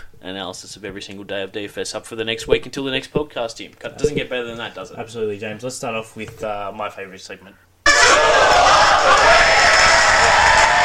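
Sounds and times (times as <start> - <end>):
speech: 0.2 - 7.7
studio audience cheering and whooping: 7.9 - 10.8.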